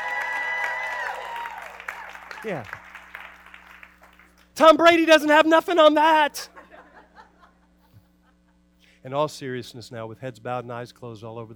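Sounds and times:
audience cheering: 0.0s - 4.1s
speech: 2.4s - 2.8s, 4.6s - 6.5s, 9.0s - 11.5s
laughter: 6.4s - 8.6s.

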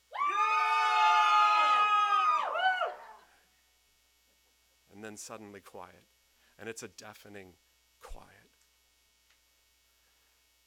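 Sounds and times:
crowd yelling at full volume: 0.1s - 3.3s
speech: 5.1s - 8.4s.

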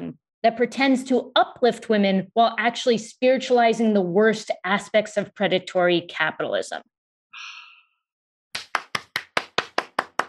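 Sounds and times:
speech: 0.4s - 7.5s
hand clapping: 8.6s - 10.2s.

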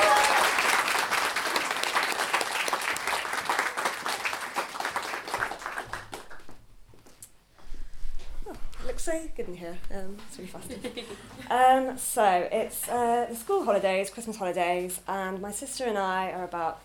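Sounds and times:
audience applause welcoming a performer to the stage: 0.0s - 6.5s
speech: 9.0s - 16.8s.

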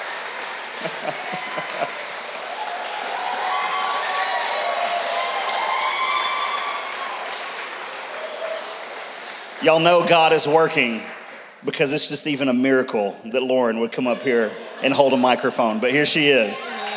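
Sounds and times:
audience applause: 0.0s - 11.6s, 15.2s - 16.9s
laughter: 0.7s - 2.4s, 13.9s - 16.9s
speech: 9.6s - 16.9s.

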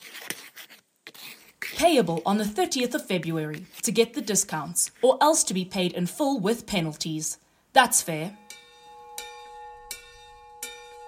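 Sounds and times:
speech: 1.8s - 8.4s
tower bell ringing: 8.4s - 11.0s.

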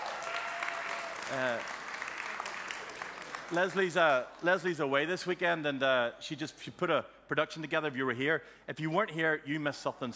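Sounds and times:
round of applause: 0.0s - 4.4s
speech: 1.3s - 1.8s, 3.5s - 10.1s.

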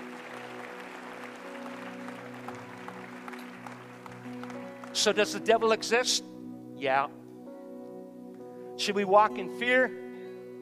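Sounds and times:
audience clapping: 0.0s - 5.4s
speech: 5.0s - 7.2s, 8.8s - 10.0s.

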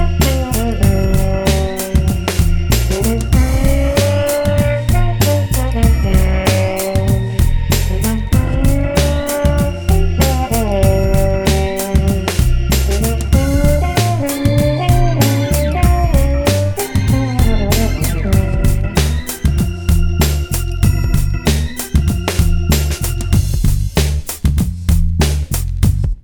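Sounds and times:
blues music: 0.0s - 26.0s.

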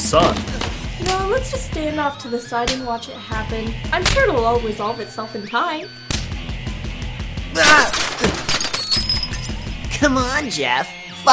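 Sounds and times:
speech: 0.1s - 6.0s, 7.6s - 8.0s, 10.0s - 11.0s
body smashing through glass patio door: 7.6s - 9.6s
glass shattering and tinkling shards: 7.6s - 9.7s.

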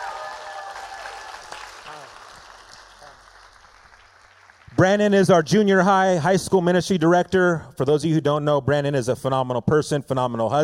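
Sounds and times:
audience applause: 0.0s - 4.8s
speech: 4.8s - 10.6s.

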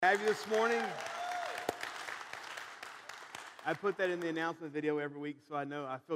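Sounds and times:
speech: 0.0s - 1.1s, 3.6s - 6.1s
audience clapping: 0.0s - 4.6s.

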